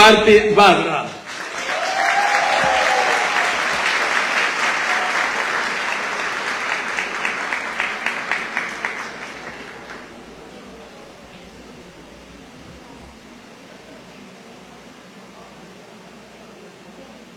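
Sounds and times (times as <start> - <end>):
speech: 0.1 - 1.2
audience applause: 1.2 - 11.2.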